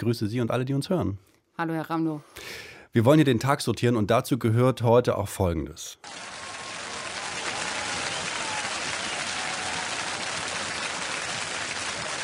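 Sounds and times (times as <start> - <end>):
speech: 0.0 - 6.4
applause triggered at the push of a button: 6.0 - 12.2.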